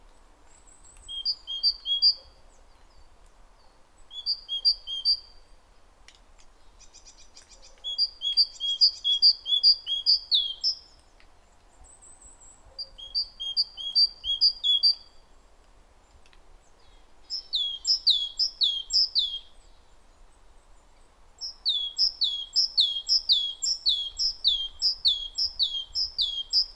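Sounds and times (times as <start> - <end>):
great tit calling: 1.1 - 2.2, 6.8 - 10.9, 12.8 - 15.0, 17.2 - 19.6, 21.4 - 26.7.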